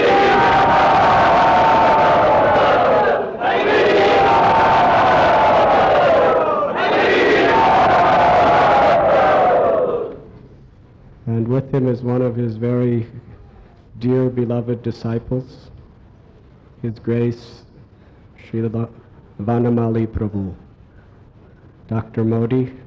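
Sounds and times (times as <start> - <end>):
crowd cheering to welcome a guest at a temple: 0.0 - 10.3
speech: 11.7 - 12.6, 14.0 - 15.8, 16.8 - 17.6, 18.5 - 20.6, 21.9 - 22.8.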